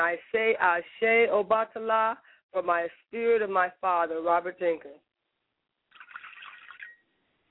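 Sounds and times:
speech: 0.0s - 5.1s
liquid poured out as a libation toward the east: 5.9s - 7.1s.

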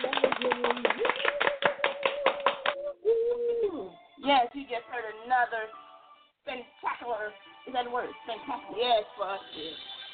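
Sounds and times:
hand clapping: 0.0s - 2.9s
speech: 4.3s - 5.8s, 6.4s - 9.9s.

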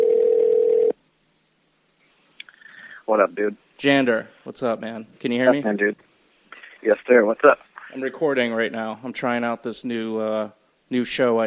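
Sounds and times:
phone call dial tone: 0.0s - 0.9s
speech: 3.1s - 6.1s, 6.8s - 11.4s.

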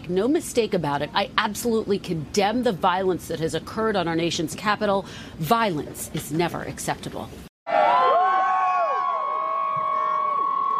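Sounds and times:
speech: 0.1s - 7.5s
crowd of supporters cheering: 7.7s - 10.7s.

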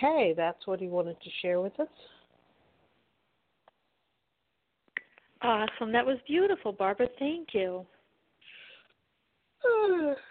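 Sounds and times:
speech: 0.0s - 2.2s, 5.4s - 7.9s, 9.6s - 10.2s
person yawning: 9.6s - 10.2s.

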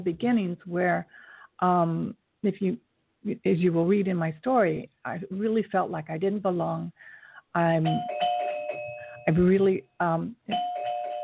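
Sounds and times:
speech: 0.0s - 8.2s, 9.3s - 10.7s
doorbell ringing at front door: 7.8s - 9.6s, 10.5s - 11.2s.

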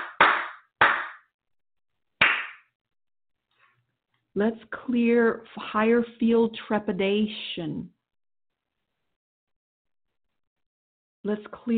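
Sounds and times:
hand clapping: 0.0s - 1.3s, 2.2s - 2.7s
speech: 4.4s - 8.0s, 11.2s - 11.7s.

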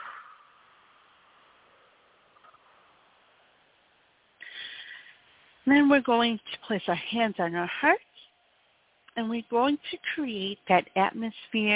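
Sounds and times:
deep breaths in through the nose and out through the mouth in a calming guided exercise: 4.4s - 5.6s
speech: 5.7s - 8.0s, 9.2s - 11.7s.

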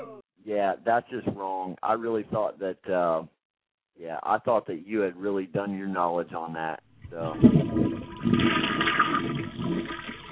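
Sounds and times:
speech: 0.5s - 3.4s, 4.0s - 7.8s
toilet flush sound effect: 7.2s - 10.2s.

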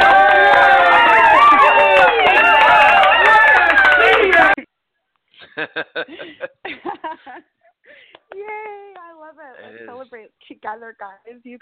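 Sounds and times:
crowd clapping: 0.0s - 4.6s
laughter: 3.7s - 4.6s, 5.4s - 7.6s
speech: 10.6s - 11.5s.

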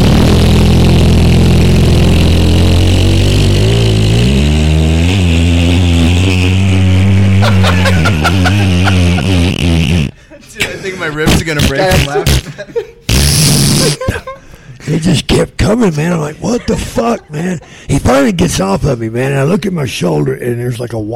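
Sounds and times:
voice imitating a long fart: 0.0s - 10.2s, 11.3s - 14.3s
laughter: 7.4s - 15.1s, 15.9s - 18.1s
speech: 14.9s - 21.1s.

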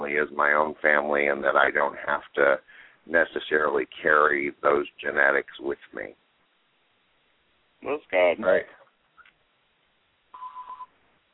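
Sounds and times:
speech: 0.1s - 6.2s, 7.8s - 8.8s
beeping in the background: 10.3s - 11.0s.

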